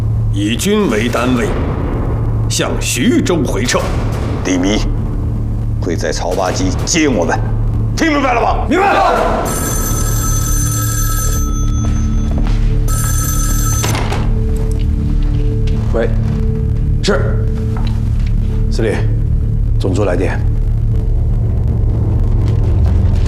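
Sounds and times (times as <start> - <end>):
low rumble: 0.0 - 8.6, 14.4 - 23.2
speech: 0.4 - 1.7, 2.5 - 5.0, 5.8 - 9.8, 16.0 - 16.2, 17.1 - 17.4, 18.8 - 19.2, 19.8 - 20.5
telephone bell ringing for a military commander: 9.3 - 14.5.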